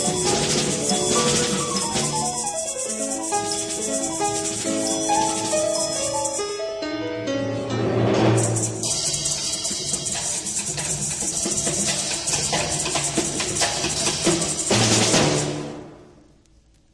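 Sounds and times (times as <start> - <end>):
Argentine percussion rhythms: 0.0 - 6.7, 8.0 - 16.1.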